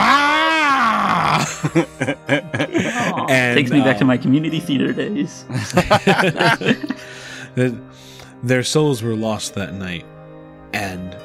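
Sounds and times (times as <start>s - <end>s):
person imitating a monster scream: 0.0s - 1.5s
laughter: 1.2s - 4.2s, 5.5s - 7.6s
speech: 1.6s - 10.1s, 10.7s - 11.2s.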